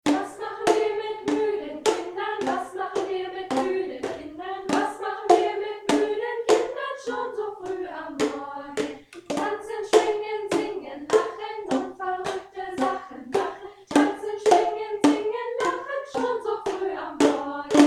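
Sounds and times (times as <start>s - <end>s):
person singing: 0.1s - 17.8s.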